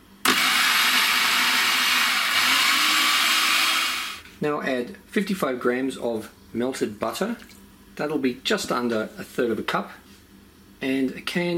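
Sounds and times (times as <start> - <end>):
food processor mixing cocoa powder and desiccated coconut: 0.2 - 4.2
speech: 4.4 - 10.0, 10.8 - 11.5.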